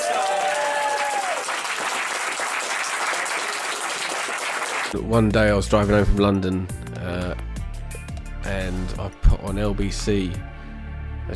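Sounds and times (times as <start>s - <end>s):
audience applause: 0.0s - 5.0s
speech: 4.9s - 7.4s, 8.5s - 10.5s.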